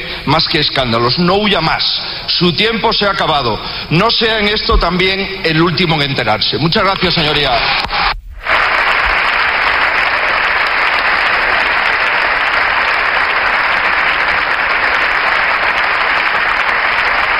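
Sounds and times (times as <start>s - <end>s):
speech: 0.3s - 8.0s
long applause from parliament benches: 8.4s - 17.3s.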